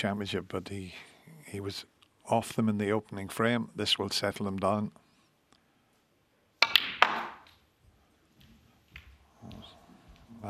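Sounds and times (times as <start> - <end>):
speech: 0.0 - 5.0
snooker balls clacking as the cue ball cannons into the blue: 6.6 - 7.6.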